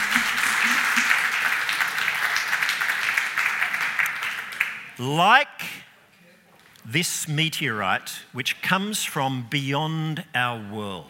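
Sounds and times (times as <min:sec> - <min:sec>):
crowd applauding: 0:00.0 - 0:05.0
speech: 0:05.0 - 0:05.8, 0:06.9 - 0:11.0.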